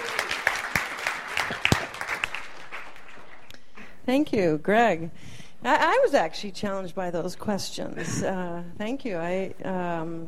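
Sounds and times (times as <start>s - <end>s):
audience applause: 0.0s - 3.5s
speech: 4.0s - 10.2s.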